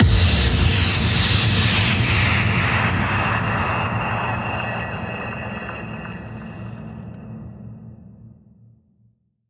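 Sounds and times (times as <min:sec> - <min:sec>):
impact sound effect: 0:00.0 - 0:08.7.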